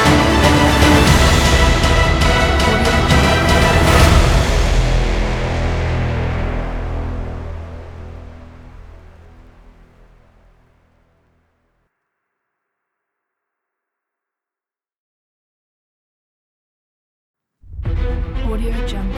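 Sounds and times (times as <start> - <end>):
fast action epic trailer music: 0.0 - 10.3, 17.7 - 19.1.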